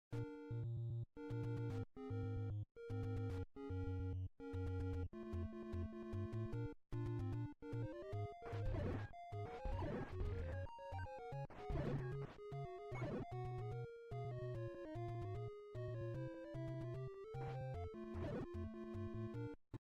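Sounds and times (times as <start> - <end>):
NES chiptune game music: 0.1 - 19.6.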